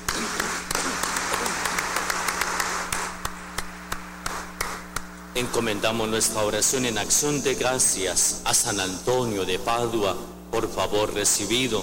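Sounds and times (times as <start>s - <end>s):
crowd applause in a reverberant room: 0.0s - 4.8s
speech: 5.4s - 11.8s.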